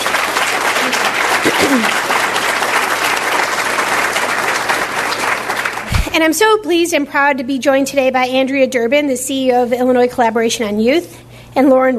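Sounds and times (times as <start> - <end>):
audience applause: 0.0 - 6.1
speech: 1.6 - 2.1, 6.2 - 11.9.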